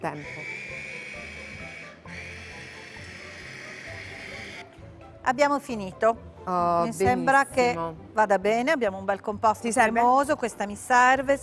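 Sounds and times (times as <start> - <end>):
speech: 0.0 - 0.6, 5.3 - 11.4
blender whirring blending hummus: 0.0 - 4.6.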